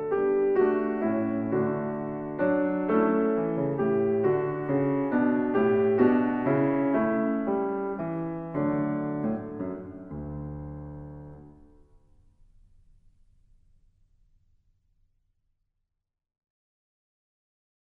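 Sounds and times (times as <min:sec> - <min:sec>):
baroque waltz music: 0:00.0 - 0:11.6.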